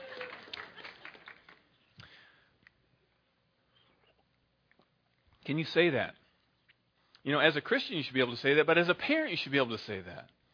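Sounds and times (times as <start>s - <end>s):
scattered audience clapping: 0.0s - 2.2s
speech: 5.5s - 6.2s, 7.2s - 10.4s.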